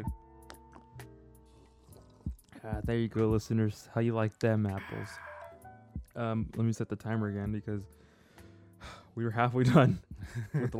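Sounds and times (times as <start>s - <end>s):
sipping coffee: 0.5s - 2.6s
speech: 2.6s - 5.3s, 6.2s - 8.0s, 8.8s - 10.7s
laughter: 9.7s - 10.7s.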